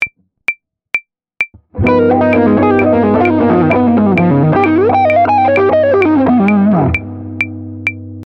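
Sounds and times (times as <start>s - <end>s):
musical lick: 1.8s - 8.0s.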